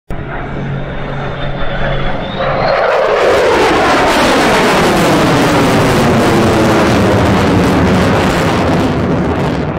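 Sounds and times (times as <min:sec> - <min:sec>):
F-35 fighter jet manoeuvring: 0:00.1 - 0:09.6.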